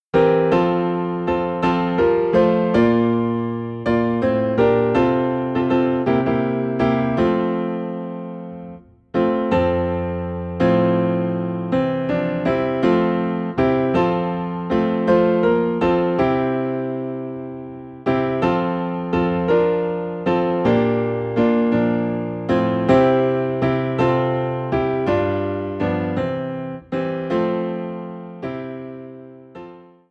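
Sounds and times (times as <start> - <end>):
piano playing in F: 0.0 - 30.1.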